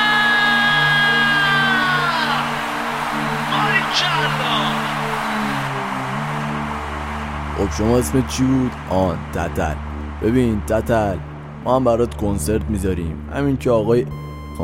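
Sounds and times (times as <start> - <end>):
audience screaming loudly: 0.0 - 10.9
speech: 7.6 - 14.6.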